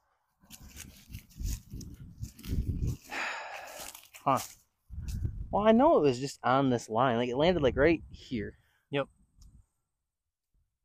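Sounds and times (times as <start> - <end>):
leaves crunching underfoot: 0.5 - 5.2
speech: 4.2 - 4.6, 5.5 - 9.2.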